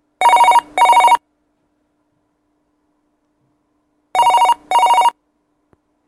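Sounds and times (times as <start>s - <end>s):
office phone ringing: 0.2s - 1.2s, 4.2s - 5.2s.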